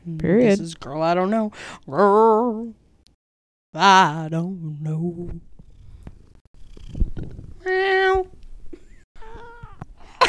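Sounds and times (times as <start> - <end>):
speech: 0.1 - 2.8, 3.7 - 5.5, 6.9 - 8.4
cat purring: 5.0 - 9.8.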